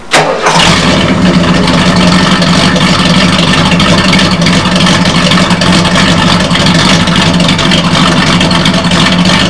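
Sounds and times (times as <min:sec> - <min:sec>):
Torino engine: 0:00.0 - 0:09.4.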